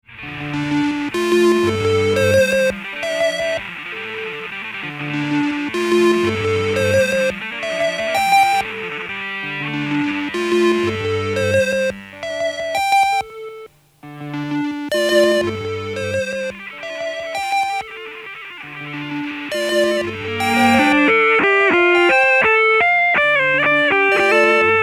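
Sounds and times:
instrumental solo: 0.1s - 24.8s
music loop: 0.1s - 24.8s.

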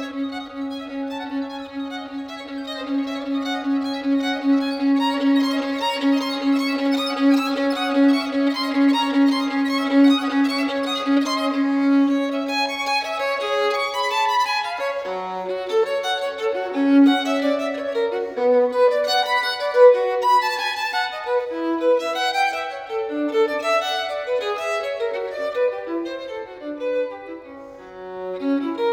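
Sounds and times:
solo violin sonata: 0.0s - 28.9s.

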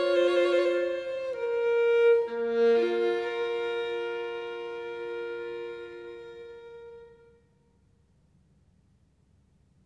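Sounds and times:
solo violin partita: 0.0s - 7.6s.

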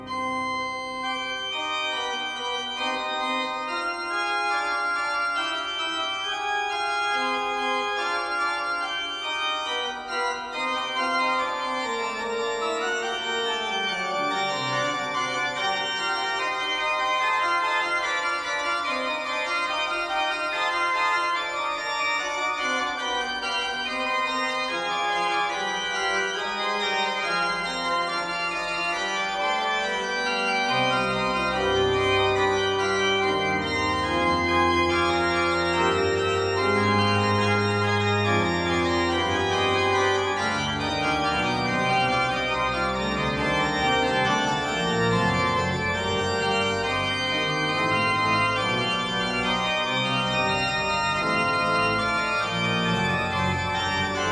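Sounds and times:
fugue in C minor on great organ: 0.0s - 54.3s.

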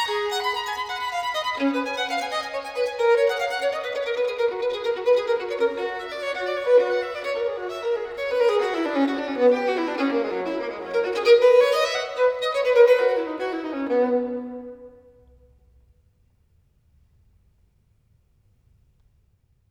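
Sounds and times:
violin sonata in C major, fast movement: 0.0s - 15.7s.

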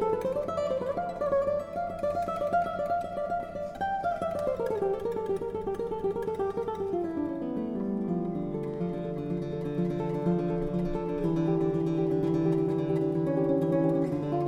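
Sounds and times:
classical guitar piece: 0.0s - 14.4s.

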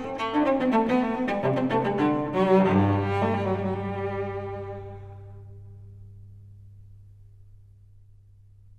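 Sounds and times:
solo cello suite in G: 0.0s - 6.2s.

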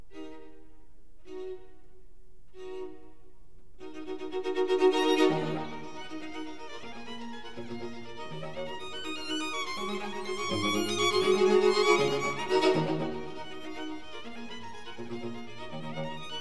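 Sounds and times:
string quartet in E flat: 3.8s - 16.3s.

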